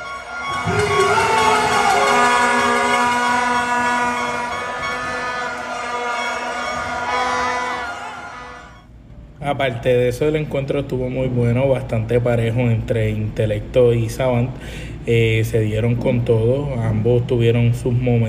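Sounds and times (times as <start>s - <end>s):
arena crowd shouting and jeering: 0.0s - 8.8s
speech: 9.6s - 18.2s.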